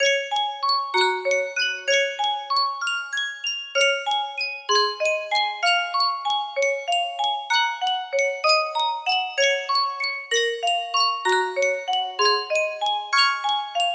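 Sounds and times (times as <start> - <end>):
Sankyo custom tune music box: 0.0 - 13.9.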